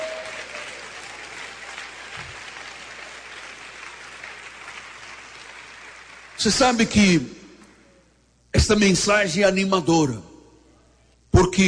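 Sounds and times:
audience applauding: 0.0s - 6.8s
speech: 6.4s - 7.4s, 8.6s - 10.3s, 11.4s - 11.6s.

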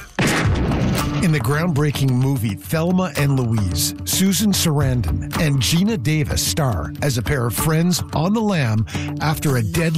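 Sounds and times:
gunshot fired at a radio in the film Thelma and Louise: 0.2s - 1.3s
speech: 1.2s - 9.9s.

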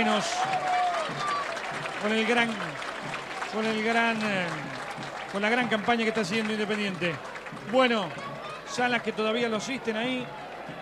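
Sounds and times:
male football commentator speaking: 0.0s - 0.6s, 3.5s - 4.7s, 5.3s - 10.3s
football crowd applause as team leaves the pitch: 0.0s - 10.8s
speech: 0.0s - 10.8s.

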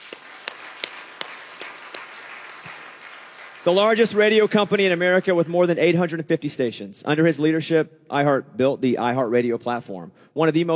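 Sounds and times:
audience clapping: 0.0s - 5.5s
speech: 3.6s - 10.7s.

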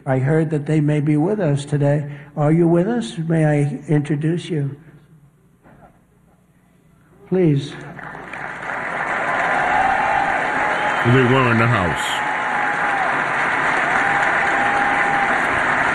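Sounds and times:
speech: 0.0s - 4.9s, 7.3s - 8.1s, 11.0s - 12.3s
crowd applause: 7.8s - 15.9s.

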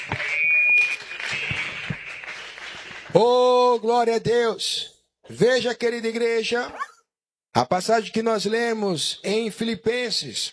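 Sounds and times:
audience applauding: 0.0s - 3.3s
speech: 3.1s - 6.8s, 7.6s - 10.5s.

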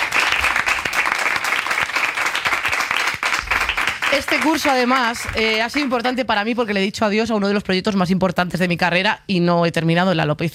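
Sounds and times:
audience applause: 0.0s - 6.0s
speech: 4.2s - 10.5s.

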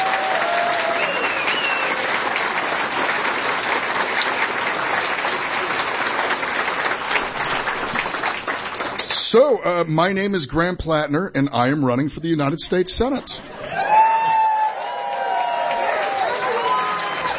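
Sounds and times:
audience applause: 0.0s - 9.6s, 13.6s - 17.3s
speech: 9.3s - 13.5s.

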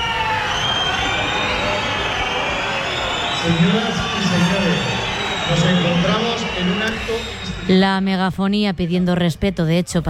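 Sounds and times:
crowd shouting protests at a parade: 0.0s - 7.8s
speech: 3.4s - 4.9s, 5.5s - 10.0s.

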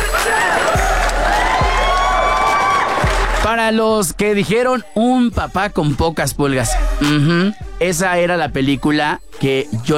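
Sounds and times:
whoops and shouting voices: 0.0s - 3.5s
audience applause: 0.1s - 3.5s
speech: 3.5s - 9.9s.

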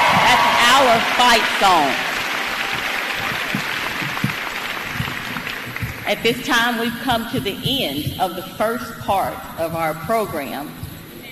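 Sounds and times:
audience applause: 0.0s - 6.0s
speech: 0.8s - 2.1s, 6.1s - 10.8s.

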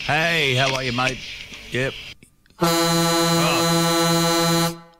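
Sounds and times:
speech: 0.1s - 2.1s, 2.6s - 3.5s
loud vehicle horn honking: 2.6s - 4.9s.

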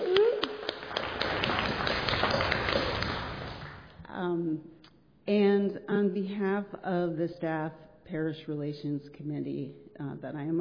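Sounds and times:
audience clapping: 0.0s - 4.0s
speech: 5.3s - 10.6s.

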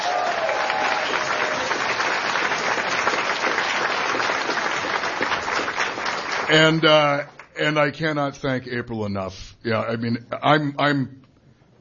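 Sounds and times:
audience applause: 0.0s - 7.5s
speech: 6.5s - 11.2s.

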